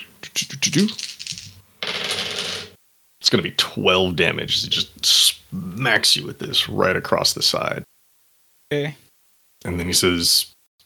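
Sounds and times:
speech: 0.6 - 1.1, 3.3 - 7.9, 8.7 - 9.0, 9.6 - 10.8
dice being rolled: 0.7 - 2.8.

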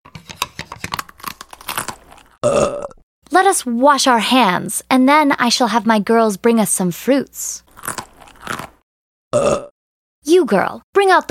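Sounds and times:
chewing and tearing food during a meal: 1.1 - 2.4, 7.7 - 8.8
speech: 2.4 - 8.0, 10.5 - 11.2.

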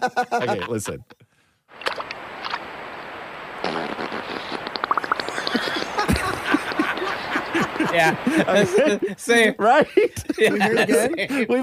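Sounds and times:
laughter: 0.0 - 1.0, 5.3 - 11.5
speech: 0.0 - 1.2, 7.9 - 11.6
beaver fart half in water: 1.7 - 7.6.

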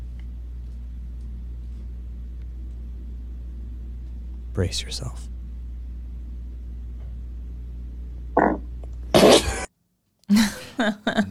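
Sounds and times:
low steady hum: 0.0 - 9.7
speech: 4.6 - 5.3
fart: 8.4 - 9.7
laughter: 10.3 - 11.2.

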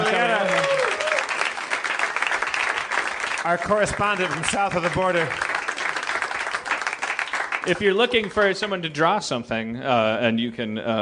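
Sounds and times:
audience applause: 0.0 - 8.6
whistle or cheer: 0.2 - 1.2
speech: 3.4 - 5.5, 7.6 - 11.0.

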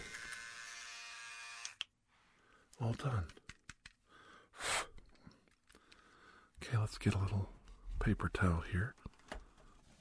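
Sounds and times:
electric clippers buzzing: 0.0 - 1.8
speech: 2.8 - 3.4, 6.8 - 9.1.

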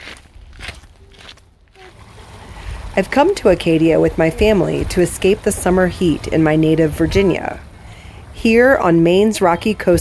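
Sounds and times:
footsteps crunching on a gravel path in Acadia National Park in Maine: 0.0 - 2.0
speech: 3.0 - 7.7, 8.4 - 9.9.

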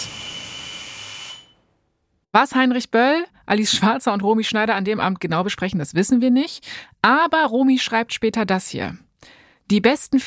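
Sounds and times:
electric doorbell buzzing: 0.0 - 1.7
speech: 2.3 - 10.2.

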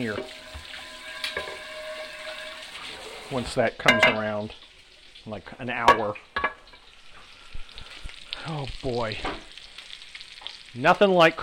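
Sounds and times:
speech: 0.0 - 0.4, 3.3 - 6.3, 8.4 - 9.5, 10.8 - 11.4
water running while washing out a pan used to sear pork: 0.0 - 9.5
pan knocks: 3.9 - 4.2.

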